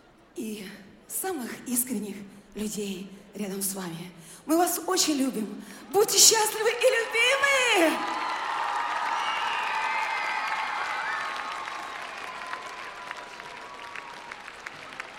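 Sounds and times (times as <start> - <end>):
speech: 0.4 - 8.2
audience applause: 7.0 - 15.1
cheers and whistles: 7.6 - 15.1.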